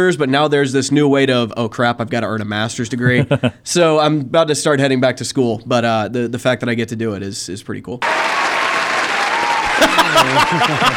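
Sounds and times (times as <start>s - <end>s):
speech: 0.0s - 8.5s, 9.9s - 10.9s
laughter: 3.0s - 3.6s, 9.3s - 10.9s
applause sound effect from soundboard: 8.0s - 10.9s.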